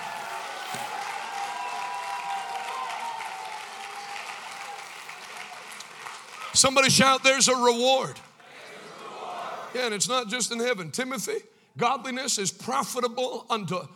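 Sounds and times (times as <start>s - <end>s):
large crowd clapping: 0.0s - 7.0s
speech: 6.6s - 8.3s, 9.7s - 13.9s.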